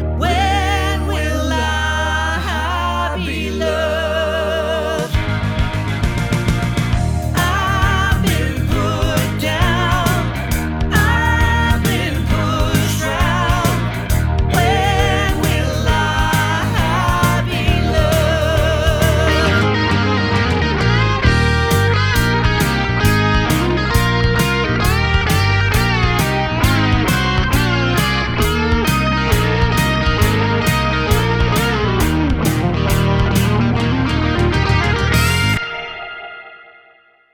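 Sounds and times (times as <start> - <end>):
tribute band playing: 0.2 - 36.1.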